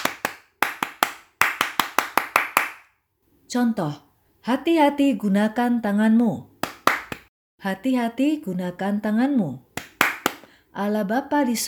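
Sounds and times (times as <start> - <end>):
rhythmic hand clapping: 0.0 - 2.9, 6.6 - 7.3, 9.8 - 10.5
speech: 3.5 - 6.5, 7.6 - 9.7, 10.8 - 11.6.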